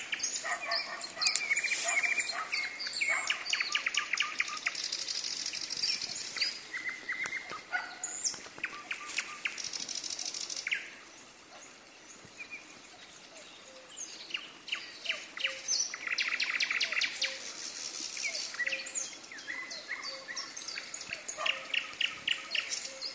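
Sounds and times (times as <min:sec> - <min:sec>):
common nightingale singing: 0:00.0 - 0:11.0, 0:12.4 - 0:23.1
faint rustling: 0:00.4 - 0:02.7.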